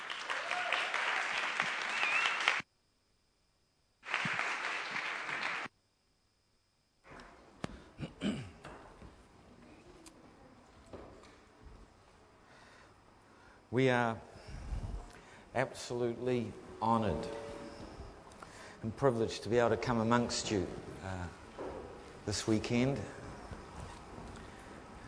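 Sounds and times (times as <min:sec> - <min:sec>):
audience applause welcoming two speakers after a prayer: 0:00.0 - 0:02.6, 0:04.0 - 0:05.7
speech: 0:13.8 - 0:14.3, 0:15.6 - 0:17.4, 0:18.8 - 0:21.4, 0:22.3 - 0:23.2.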